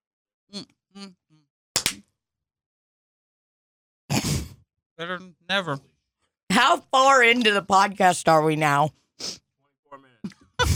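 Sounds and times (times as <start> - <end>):
speech: 0.5 - 1.3, 5.0 - 5.9, 6.6 - 10.7
hand clap: 1.8 - 2.0.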